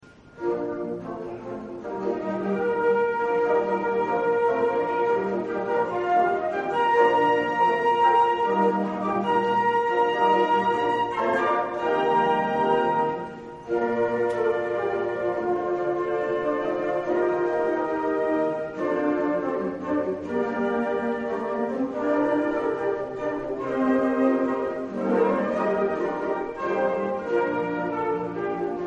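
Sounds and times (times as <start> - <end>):
flute in concert: 0.0 - 28.8.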